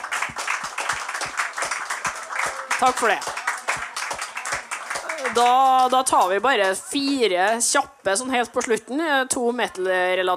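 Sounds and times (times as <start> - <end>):
applause: 0.0 - 7.3
speech: 2.8 - 3.4, 5.2 - 10.3.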